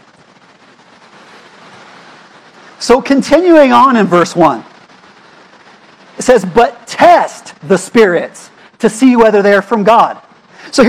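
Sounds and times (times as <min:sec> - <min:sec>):
rain falling: 0:00.0 - 0:10.8
speech: 0:02.8 - 0:04.7, 0:06.3 - 0:10.8.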